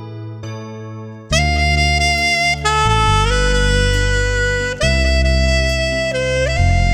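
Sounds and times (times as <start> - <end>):
saxophone: 1.3 - 6.8.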